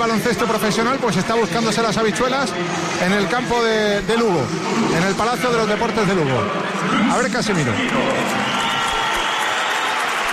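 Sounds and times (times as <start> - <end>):
speech: 0.0 - 8.5
scattered applause: 7.6 - 10.3
basketball crowd whistling at the Palacio de los Deportes in Lugo: 8.0 - 10.3.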